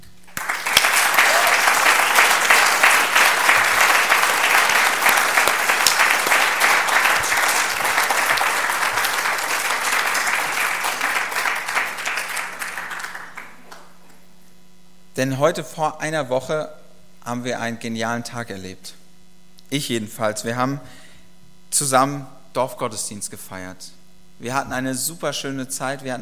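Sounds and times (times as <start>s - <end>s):
audience applause: 0.2s - 14.2s
speech: 15.2s - 19.0s, 19.7s - 21.0s, 21.7s - 26.2s.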